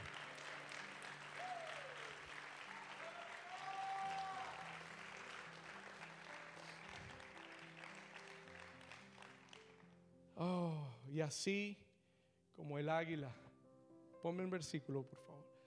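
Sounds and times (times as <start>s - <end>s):
faint cheers and whistles: 0.0s - 4.9s
audience applause: 0.0s - 9.8s
speech: 10.4s - 11.8s, 12.7s - 13.4s, 14.2s - 15.5s.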